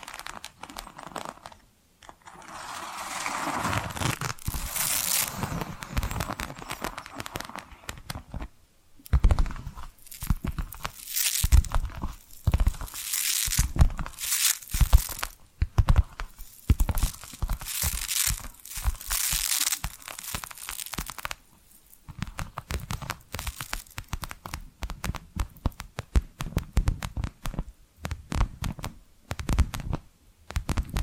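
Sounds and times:
crinkly papery rustles: 0:00.0 - 0:01.6, 0:02.3 - 0:08.5, 0:09.1 - 0:25.0
tapping and scratching: 0:00.0 - 0:21.4, 0:22.0 - 0:31.0.

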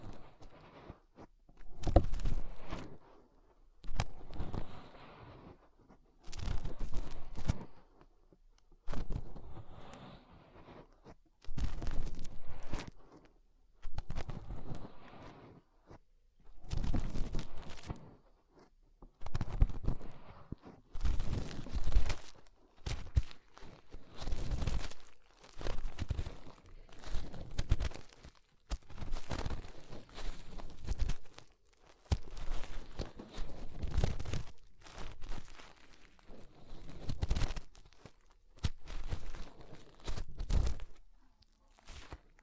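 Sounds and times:
fingers rubbing and scraping inside an ear: 0:03.8 - 0:08.0, 0:08.8 - 0:16.0, 0:16.6 - 0:41.1.

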